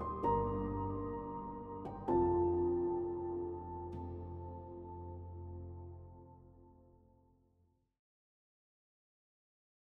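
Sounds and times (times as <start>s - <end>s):
atmospheric piano: 0.0s - 7.5s.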